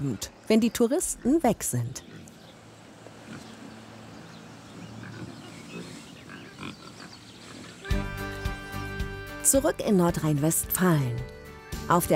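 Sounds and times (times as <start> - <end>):
speech: 0.0 - 2.2, 9.5 - 12.1
pigs grunting and snuffling in an outdoor pen: 1.2 - 2.4, 3.2 - 7.9.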